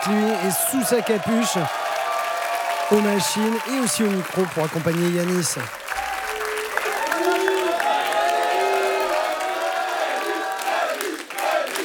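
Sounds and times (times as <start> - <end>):
concert audience applauding and cheering the drummer's arrival on stage: 0.0 - 11.8
speech: 0.1 - 2.0, 2.9 - 5.9.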